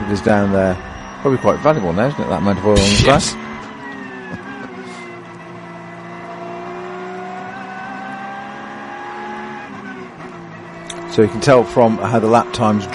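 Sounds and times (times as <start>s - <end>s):
racing car engine whining while passing at speed: 0.0s - 12.9s
speech: 0.1s - 3.5s, 11.2s - 12.9s.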